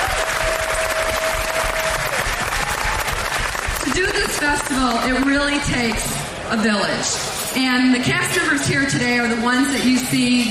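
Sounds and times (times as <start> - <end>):
audience applause: 0.0 - 5.0
speech: 4.5 - 10.4.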